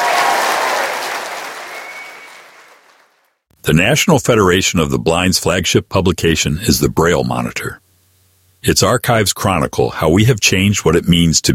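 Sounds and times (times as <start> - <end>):
audience applause: 0.0 - 3.2
speech: 3.7 - 7.8, 8.6 - 11.5.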